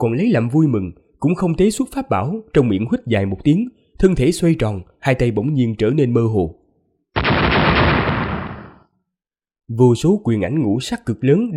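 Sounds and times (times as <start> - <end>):
speech: 0.0 - 6.6, 9.7 - 11.5
thunderous booming blasts: 7.2 - 8.8.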